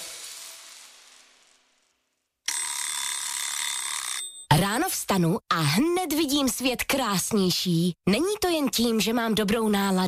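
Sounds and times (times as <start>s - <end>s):
shrill electric bell ringing: 2.5s - 4.5s
speech: 4.6s - 10.0s.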